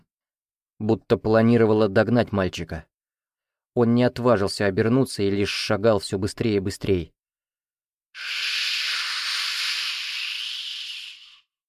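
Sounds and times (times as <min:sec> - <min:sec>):
speech: 0:00.8 - 0:02.9, 0:03.8 - 0:07.2, 0:08.2 - 0:08.6
airy hissing in a corridor: 0:08.2 - 0:11.5.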